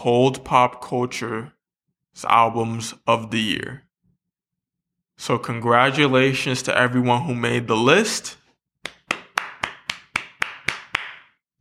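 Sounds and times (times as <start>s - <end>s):
speech: 0.0s - 1.6s, 2.2s - 3.8s, 5.2s - 8.4s
sharp claps: 8.8s - 11.4s.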